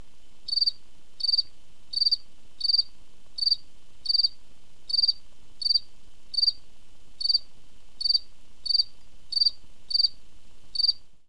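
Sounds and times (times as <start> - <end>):
cricket chirping: 0.5 - 6.6, 7.2 - 11.0.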